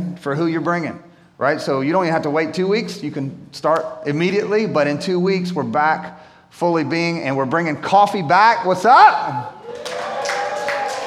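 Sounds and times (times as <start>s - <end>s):
speech: 0.2s - 9.9s
audience clapping: 9.6s - 11.0s.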